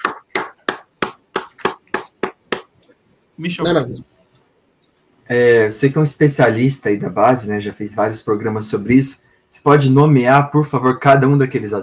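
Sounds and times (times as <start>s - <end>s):
people clapping: 0.0s - 2.7s
speech: 3.4s - 4.1s, 5.3s - 11.8s.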